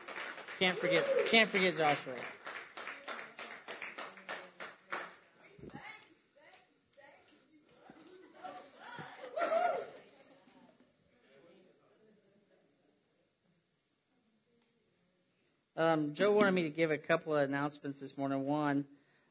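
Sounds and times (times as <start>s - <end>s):
audience applause: 0.0s - 5.3s, 8.0s - 10.1s
speech: 0.6s - 2.4s, 15.9s - 19.0s.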